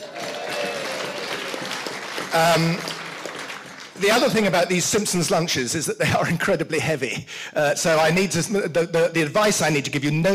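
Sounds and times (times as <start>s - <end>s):
audience cheering: 0.0s - 4.2s
speech: 2.3s - 2.9s, 4.0s - 10.3s.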